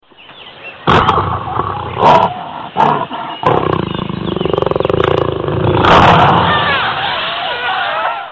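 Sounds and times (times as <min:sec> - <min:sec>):
jaguar: 0:00.9 - 0:06.8
laughter: 0:05.9 - 0:08.3.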